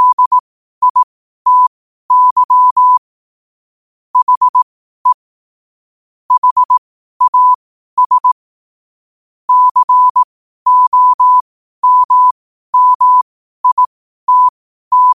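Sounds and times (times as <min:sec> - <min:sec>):
morse code at 5 wpm: 0:00.0 - 0:03.0, 0:04.2 - 0:05.2, 0:06.3 - 0:08.4, 0:09.5 - 0:15.1.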